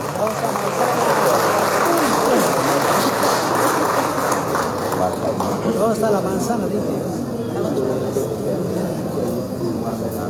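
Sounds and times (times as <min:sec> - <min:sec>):
applause: 0:00.0 - 0:06.2
speech: 0:05.9 - 0:10.2.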